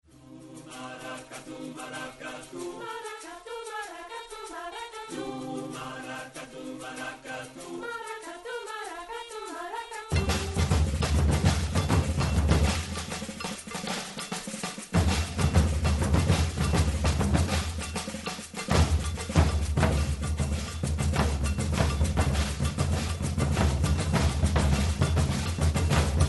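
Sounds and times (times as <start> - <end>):
maracatu percussion: 0.0 - 26.2.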